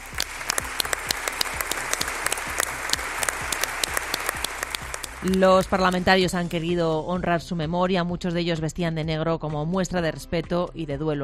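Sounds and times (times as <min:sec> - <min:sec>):
long applause: 0:00.0 - 0:06.0
speech: 0:05.2 - 0:11.2.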